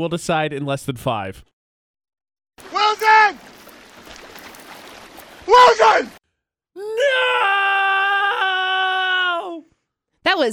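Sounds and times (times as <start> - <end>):
speech: 0.0 - 1.5, 5.5 - 6.2, 10.4 - 10.5
person screaming in sadness: 5.5 - 6.1, 6.8 - 9.6.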